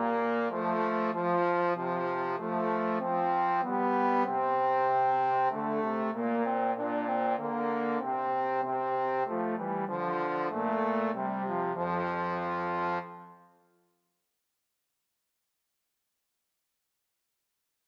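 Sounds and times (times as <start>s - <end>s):
trombone trio playing a Christmas hymn: 0.0s - 13.2s.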